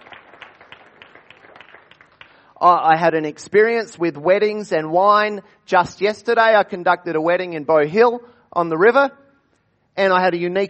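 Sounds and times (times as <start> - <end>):
faint audience applause for a couple's wedding anniversary: 0.0 - 2.6
speech: 2.6 - 9.2, 10.0 - 10.6.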